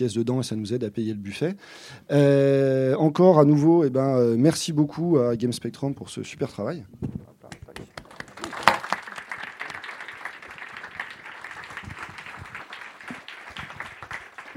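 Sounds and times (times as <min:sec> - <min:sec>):
speech: 0:00.0 - 0:07.6
audience applause: 0:07.8 - 0:14.5.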